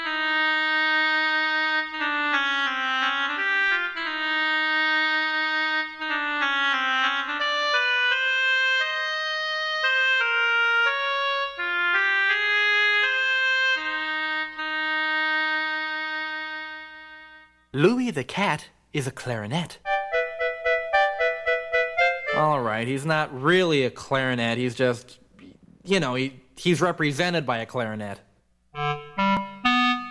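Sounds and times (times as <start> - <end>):
solo oboe playing a flowing melody: 0.0 - 17.7, 19.9 - 22.6, 28.8 - 30.0
speech: 17.8 - 19.8, 22.4 - 25.2, 25.9 - 28.2.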